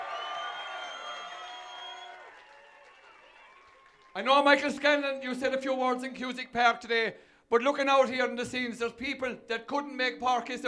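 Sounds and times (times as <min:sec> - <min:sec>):
crowd cheering: 0:00.0 - 0:04.3
speech: 0:04.2 - 0:10.6.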